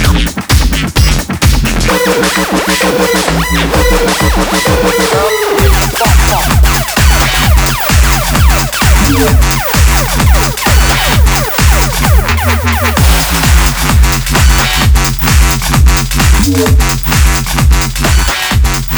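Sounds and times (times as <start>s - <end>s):
fidget house music: 0.0s - 18.9s.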